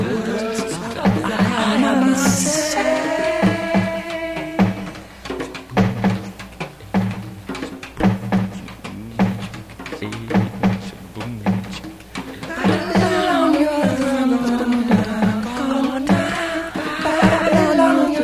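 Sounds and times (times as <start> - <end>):
laughter: 0.0 - 4.9, 12.3 - 18.2
rastaman chanting: 0.0 - 4.9, 5.7 - 6.3, 6.9 - 13.6
live reggae music: 0.0 - 18.2.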